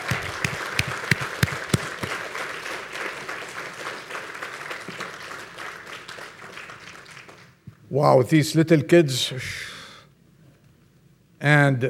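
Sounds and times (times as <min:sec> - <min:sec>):
audience clapping for three choirs: 0:00.0 - 0:07.4
speech: 0:07.9 - 0:09.7, 0:11.4 - 0:11.8.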